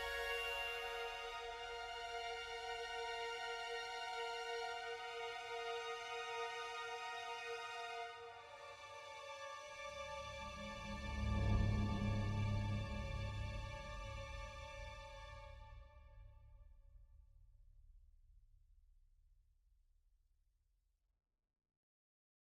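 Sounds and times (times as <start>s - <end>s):
string instrument: 0.0s - 16.3s.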